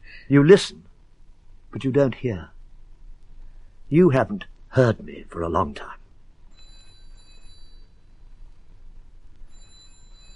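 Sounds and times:
speech: 0.3s - 0.9s, 1.7s - 2.5s, 3.9s - 6.0s
telephone ringing: 6.5s - 8.1s, 9.5s - 10.3s.

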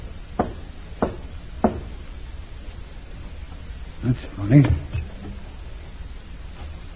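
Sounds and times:
knocking on a side door: 0.4s - 1.9s
speech: 4.0s - 5.0s.

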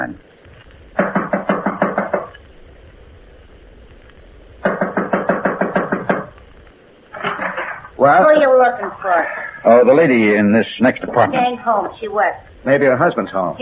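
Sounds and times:
knocking on an apartment door: 1.0s - 2.3s, 4.6s - 6.3s
speech: 8.0s - 13.5s.

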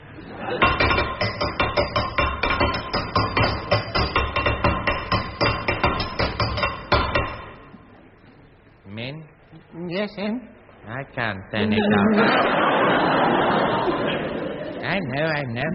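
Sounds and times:
laughter: 0.0s - 0.8s, 11.6s - 15.5s
speech: 0.3s - 0.8s, 10.0s - 14.1s, 14.9s - 15.7s
hammer banging on a stuck metal tap: 0.6s - 7.8s.

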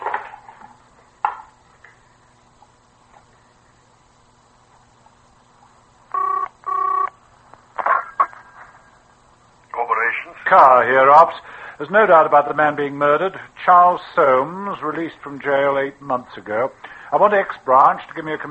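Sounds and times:
quiet hum: 0.0s - 18.4s
telephone dial tones: 6.1s - 7.1s
speech: 10.3s - 18.4s.

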